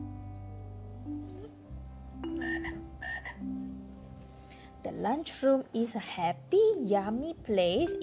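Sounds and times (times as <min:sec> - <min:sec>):
frog croaking: 0:02.3 - 0:03.5
speech: 0:05.0 - 0:08.0.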